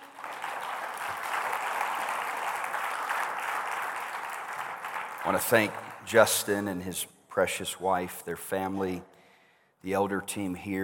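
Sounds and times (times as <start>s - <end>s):
audience applause: 0.0s - 6.0s
speech: 5.2s - 9.2s, 9.8s - 10.8s.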